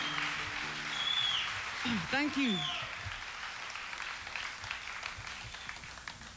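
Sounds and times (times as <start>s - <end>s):
small studio audience clapping: 0.0s - 6.3s
speech: 1.8s - 2.8s.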